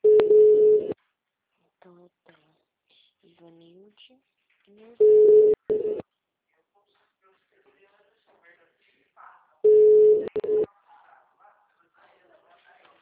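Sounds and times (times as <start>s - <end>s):
telephone busy signal: 0.0s - 0.9s, 5.0s - 6.0s, 9.7s - 10.6s
speech: 3.5s - 6.0s.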